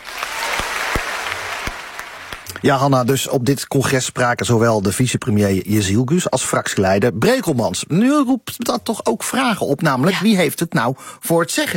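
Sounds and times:
audience applause: 0:00.0 - 0:02.8
speech: 0:02.6 - 0:11.7.

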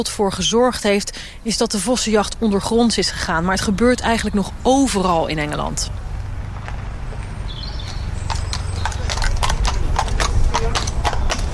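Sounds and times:
speech: 0:00.0 - 0:06.1
low outdoor rumble: 0:00.0 - 0:11.5
horses' hooves clip-clopping on hard ground: 0:05.0 - 0:11.5.

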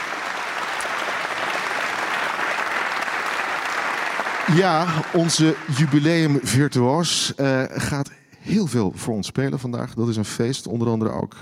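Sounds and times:
audience clapping for a pianist: 0:00.0 - 0:07.2
speech: 0:04.5 - 0:11.4.

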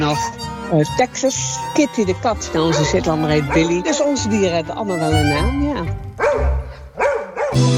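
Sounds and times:
speech: 0:00.0 - 0:06.0
dachshund barking: 0:02.6 - 0:04.1, 0:06.2 - 0:07.6.

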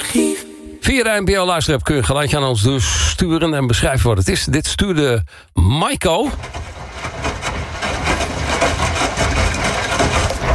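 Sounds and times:
speech: 0:00.9 - 0:06.6
washing machine running: 0:06.3 - 0:10.5.

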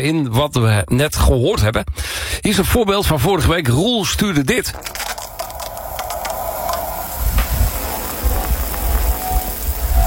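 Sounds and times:
speech: 0:00.0 - 0:05.2
shower running on Sunday morning: 0:04.8 - 0:10.0.

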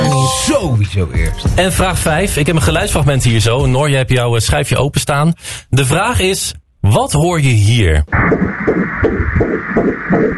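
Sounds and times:
speech: 0:00.6 - 0:10.3
baby's heartbeat on an ultrasound monitor: 0:08.1 - 0:10.3.

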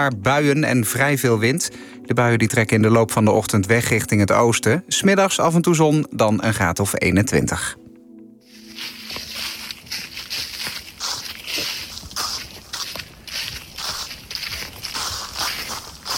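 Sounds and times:
speech: 0:00.0 - 0:07.8
footsteps through thick layer of dry leaves: 0:08.4 - 0:16.1.

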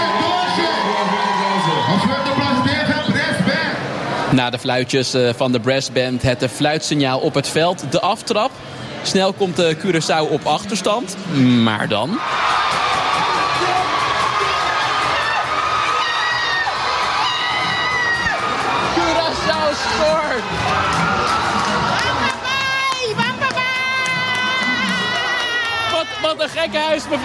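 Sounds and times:
stadium crowd roaring and cheering: 0:00.0 - 0:04.4, 0:10.0 - 0:27.2
speech: 0:04.3 - 0:12.8, 0:26.4 - 0:27.2.

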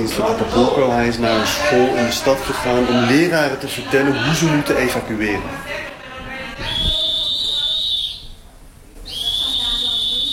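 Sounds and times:
speech: 0:00.0 - 0:05.9
school evacuation alarm signal: 0:06.6 - 0:08.4, 0:09.1 - 0:10.3.

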